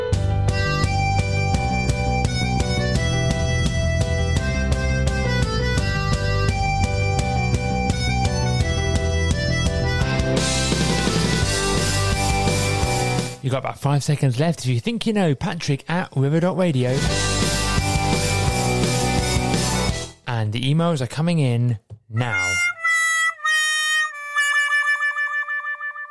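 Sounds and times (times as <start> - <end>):
TV show theme music played by a full band: 0.1 - 13.4, 16.9 - 20.2, 22.1 - 26.1
speech: 13.6 - 17.3, 20.7 - 22.7.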